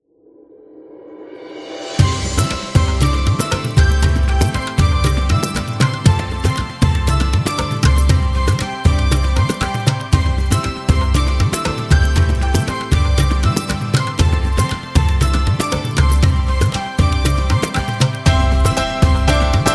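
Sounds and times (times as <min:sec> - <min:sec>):
Indian wedding music: 0:01.5 - 0:19.7.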